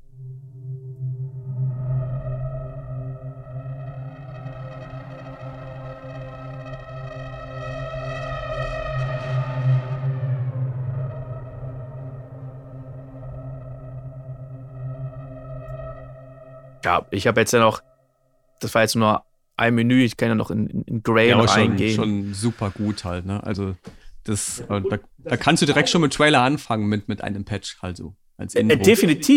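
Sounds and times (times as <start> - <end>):
synthesizer sample morphed with XY pad: 0.0 - 18.7
speech: 16.8 - 17.9, 18.6 - 29.3.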